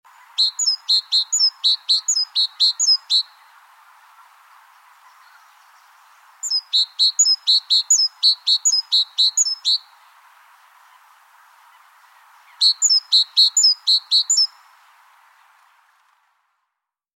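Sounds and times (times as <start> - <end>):
Great tit calling: 0.1 - 3.5, 4.6 - 10.0, 11.8 - 14.7.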